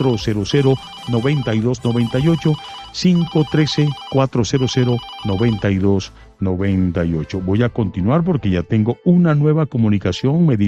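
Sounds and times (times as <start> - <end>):
telephone ringtone for an incoming call: 0.0 - 5.7
speech: 0.0 - 10.6.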